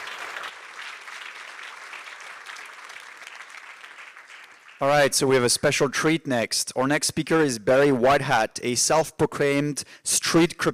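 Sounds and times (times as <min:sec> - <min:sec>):
audience applause: 0:00.0 - 0:04.9
speech: 0:04.8 - 0:10.7.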